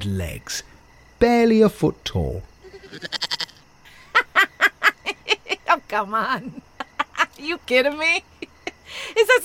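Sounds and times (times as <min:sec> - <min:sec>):
speech: 0:00.0 - 0:03.3, 0:05.9 - 0:06.6, 0:07.4 - 0:08.3, 0:08.9 - 0:09.4
goat bleating: 0:02.6 - 0:03.6
laughter: 0:03.9 - 0:05.8, 0:06.4 - 0:07.4.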